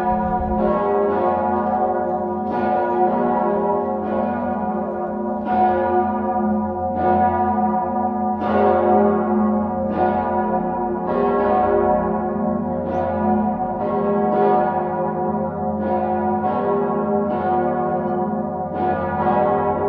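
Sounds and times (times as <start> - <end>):
cathedral bells ringing before a high feast: 0.0 - 19.8.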